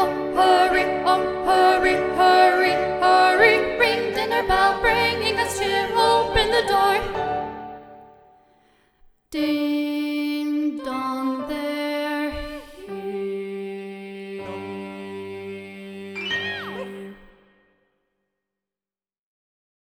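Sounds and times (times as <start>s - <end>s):
second alto voice singing in SATB choir: 0.0s - 7.7s, 9.4s - 17.5s.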